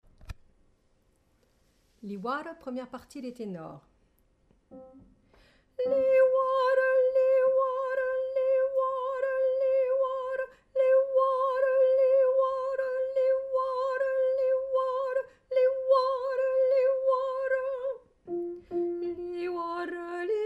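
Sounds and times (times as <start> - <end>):
tenor singing: 5.8 - 20.4.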